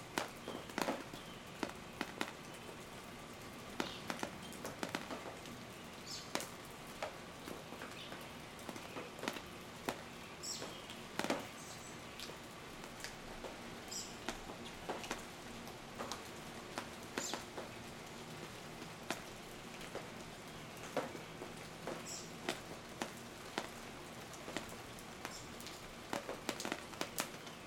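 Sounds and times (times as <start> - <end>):
rain dripping: 0.0 - 27.6
birds: 0.2 - 6.5, 7.4 - 12.4, 13.9 - 15.1, 17.2 - 17.6, 20.2 - 22.4, 24.9 - 25.9.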